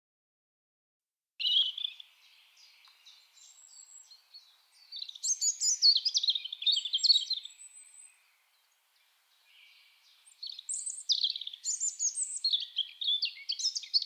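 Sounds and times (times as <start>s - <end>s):
European robin singing whistled and twittering phrases: 1.4s - 14.0s.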